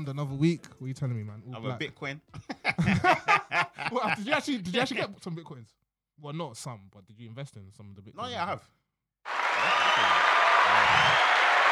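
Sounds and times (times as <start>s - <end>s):
speech: 0.0s - 10.2s
laughter: 2.4s - 4.5s
crowd applause sound effect: 9.3s - 11.6s.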